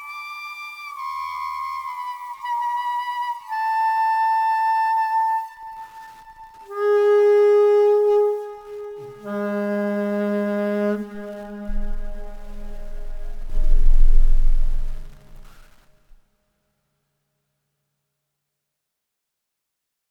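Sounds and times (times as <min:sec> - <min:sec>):
reed pipe: 0:00.0 - 0:15.9.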